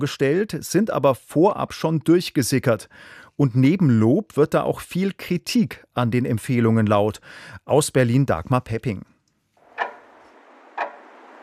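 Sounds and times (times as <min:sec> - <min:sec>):
speech: 0:00.0 - 0:09.1
clock ticking: 0:09.8 - 0:11.4.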